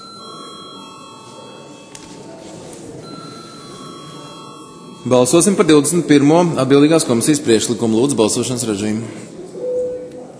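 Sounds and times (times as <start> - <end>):
parliament voting bell ringing: 0.0 - 7.4
speech: 5.0 - 9.4.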